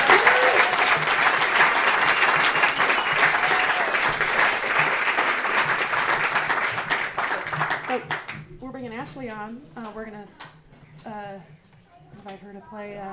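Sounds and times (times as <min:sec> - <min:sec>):
round of applause: 0:00.0 - 0:08.4
speech: 0:11.0 - 0:11.6, 0:12.2 - 0:13.1.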